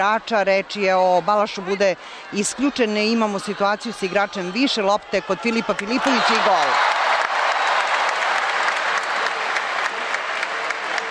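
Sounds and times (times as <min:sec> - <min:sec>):
speech: 0:00.0 - 0:07.0
crowd applause at Kombank Arena water polo match against Slovakia: 0:05.6 - 0:11.0.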